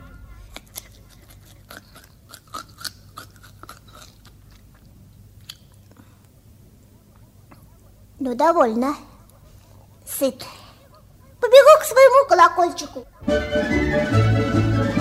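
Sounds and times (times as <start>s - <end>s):
crunchy chewing of cabbage: 0.5s - 6.3s
speech: 8.2s - 9.1s, 10.2s - 10.5s, 12.4s - 14.9s.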